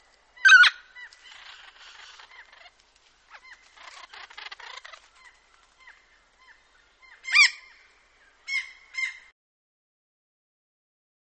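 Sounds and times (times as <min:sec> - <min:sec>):
noisy friarbird calling harsh notes and scratchy chatter: 0:00.4 - 0:02.7, 0:03.3 - 0:07.8, 0:08.5 - 0:09.3.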